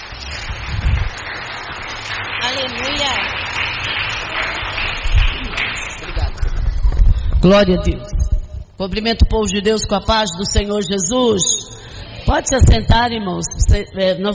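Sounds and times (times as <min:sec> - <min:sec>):
audience clapping joyfully: 0:00.0 - 0:08.0
speech: 0:02.5 - 0:03.4, 0:07.4 - 0:08.1, 0:08.8 - 0:14.3.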